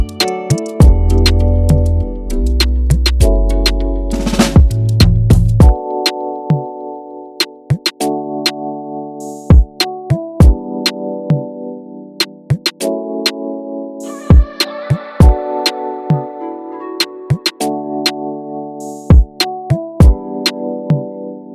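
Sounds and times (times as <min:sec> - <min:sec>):
Afrobeat instrumental: 0:00.0 - 0:06.7, 0:07.4 - 0:08.6, 0:09.2 - 0:11.5, 0:14.0 - 0:18.2, 0:18.8 - 0:21.1.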